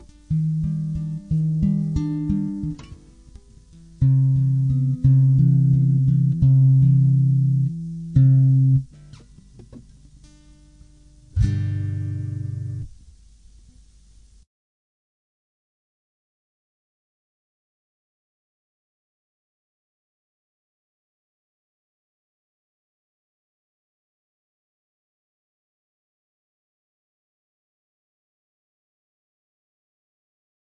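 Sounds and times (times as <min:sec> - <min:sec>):
guitar: 0:00.0 - 0:13.9.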